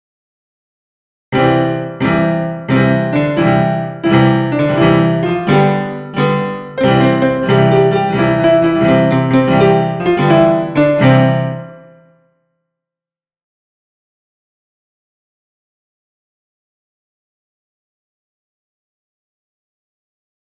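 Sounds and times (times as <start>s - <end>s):
homophonic music: 1.4s - 12.2s.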